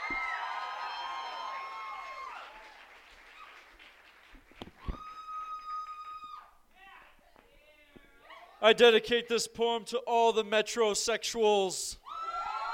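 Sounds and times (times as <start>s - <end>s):
audience whooping at a poetry slam: 0.0s - 3.6s, 4.8s - 6.6s, 12.0s - 12.7s
audience clapping at a poetry slam: 0.0s - 6.4s
speech: 8.6s - 12.0s.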